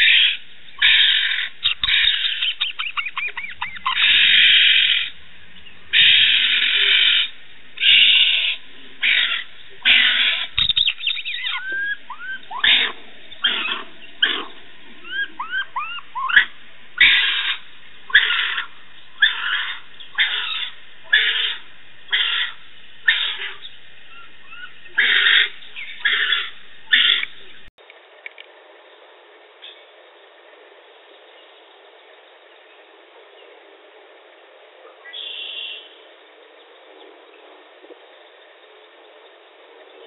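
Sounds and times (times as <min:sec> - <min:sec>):
baby raccoon calls: 0:00.0 - 0:05.2, 0:05.9 - 0:27.5.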